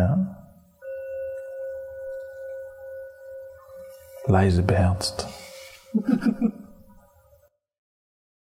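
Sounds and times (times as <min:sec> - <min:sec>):
gong being struck: 0:00.4 - 0:06.9
speech: 0:04.2 - 0:06.6
laughter: 0:05.7 - 0:06.8.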